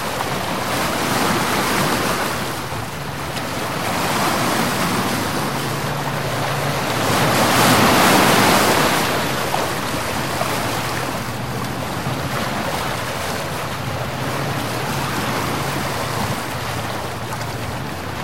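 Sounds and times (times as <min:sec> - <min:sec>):
a few lazy bigger waves: 0:00.0 - 0:18.2
calm sea: 0:00.0 - 0:18.2.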